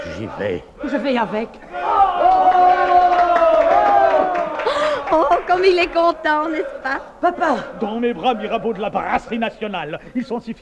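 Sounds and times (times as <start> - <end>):
speech: 0.2 - 2.5, 5.1 - 10.6
assembly cheering an ovation in a 1956 stage comedy: 0.8 - 9.4.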